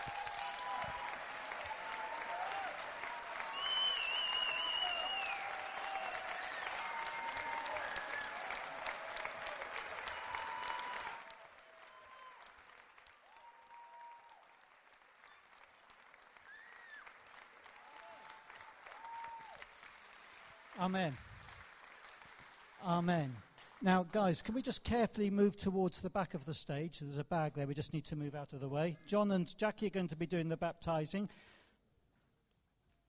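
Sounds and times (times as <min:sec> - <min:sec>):
audience applauding: 0:00.0 - 0:23.8
speech: 0:20.8 - 0:21.2, 0:22.8 - 0:31.6.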